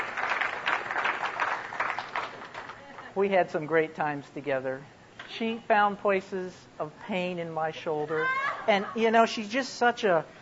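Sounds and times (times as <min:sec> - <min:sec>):
audience applause: 0:00.0 - 0:03.1
speech: 0:03.2 - 0:10.3.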